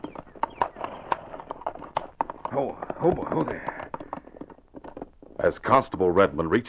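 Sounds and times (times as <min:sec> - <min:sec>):
ridden horse hooves clopping up a hill trail: 0:00.0 - 0:06.6
speech: 0:02.6 - 0:03.8, 0:05.4 - 0:06.6.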